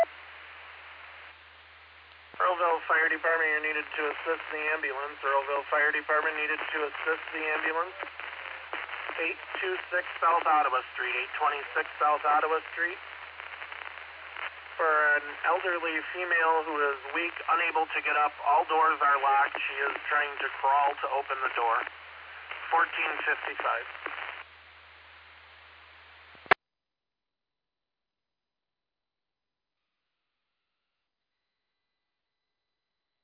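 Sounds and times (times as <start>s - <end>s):
fire: 0.2s - 26.5s.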